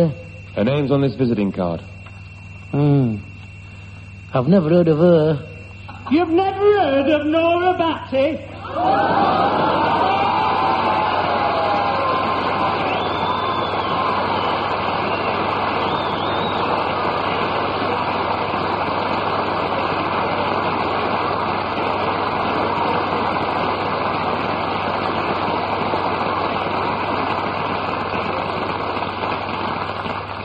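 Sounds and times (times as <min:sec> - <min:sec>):
speech: 0:00.0 - 0:02.0, 0:02.7 - 0:03.3, 0:04.3 - 0:10.1
audience applause: 0:08.6 - 0:30.4.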